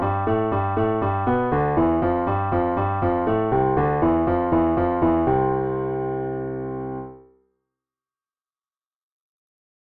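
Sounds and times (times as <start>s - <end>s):
piano finger exercise: 0.0s - 7.2s.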